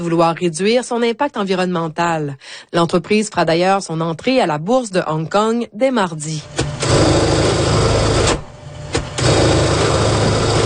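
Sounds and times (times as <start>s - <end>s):
speech: 0.0s - 7.2s
sewing machine humming: 6.4s - 10.6s.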